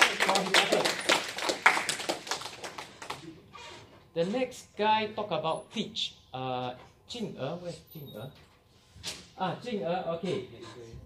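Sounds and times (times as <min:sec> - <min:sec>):
class audience clapping for a student after a speaking exercise: 0:00.0 - 0:03.3
speech: 0:04.2 - 0:08.5, 0:09.4 - 0:11.0.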